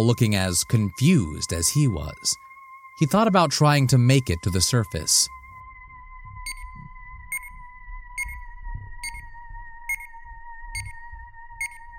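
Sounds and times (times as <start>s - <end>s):
speech: 0.0s - 5.4s
continuous frantic beeping from a watch: 6.3s - 7.6s, 8.2s - 11.9s.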